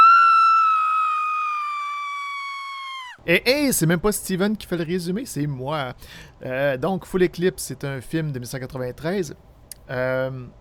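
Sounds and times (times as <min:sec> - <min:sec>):
woman screaming: 0:00.0 - 0:03.2
speech: 0:03.2 - 0:10.5.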